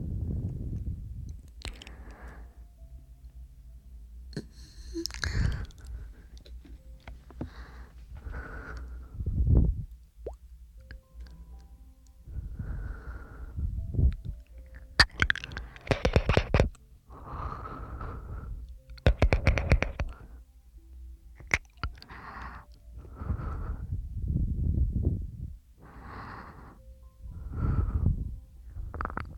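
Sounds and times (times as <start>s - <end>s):
faint low hum: 0.0s - 19.1s, 20.0s - 29.3s
breathing and puffs: 1.8s - 2.7s, 7.4s - 9.4s, 12.3s - 13.8s, 17.1s - 18.7s, 20.1s - 20.5s, 22.0s - 24.0s, 25.8s - 28.9s.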